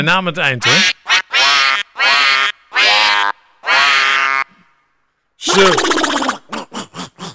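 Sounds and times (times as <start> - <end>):
speech: 0.0 - 1.0, 5.5 - 6.3
duck quacking: 0.6 - 4.5, 5.5 - 6.4.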